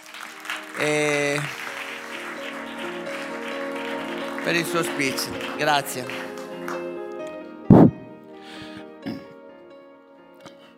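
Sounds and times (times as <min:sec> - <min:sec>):
audience applause welcoming a professor onto a stage: 0:00.0 - 0:07.3
sustained music: 0:00.0 - 0:10.7
speech: 0:00.8 - 0:01.6, 0:04.5 - 0:06.3.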